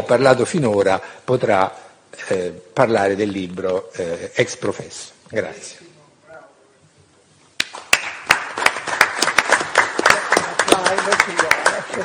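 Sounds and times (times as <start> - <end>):
speech: 0.0 - 5.9
audience applause: 7.7 - 12.0.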